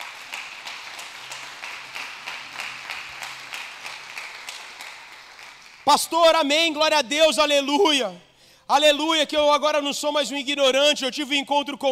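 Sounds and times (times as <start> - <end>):
audience applauding: 0.0 - 5.9
speech: 5.8 - 11.9.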